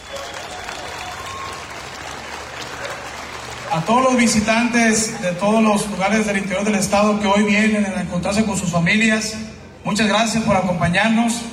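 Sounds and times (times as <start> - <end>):
audience applause: 0.0 - 6.7
speech: 3.7 - 11.5.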